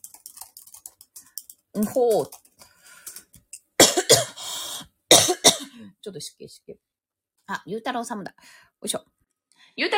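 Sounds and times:
speech: 1.7 - 2.4, 6.0 - 6.9, 7.5 - 9.2, 9.8 - 9.9
person coughing from choking: 3.8 - 4.5, 5.1 - 5.9.

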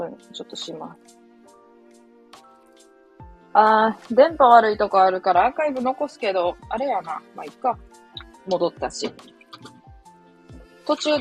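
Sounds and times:
speech: 0.0 - 1.2, 3.5 - 9.7, 10.9 - 11.2
water drips: 8.0 - 9.9.

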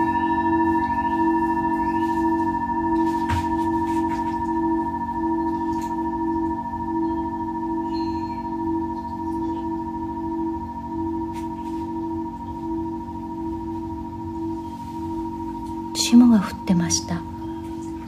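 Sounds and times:
singing bowl ringing: 0.0 - 18.0.

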